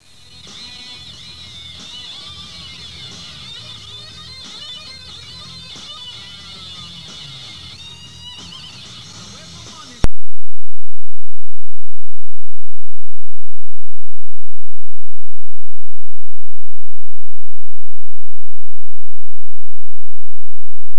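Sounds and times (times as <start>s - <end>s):
Gibson guitar riffs: 0.3s - 9.7s.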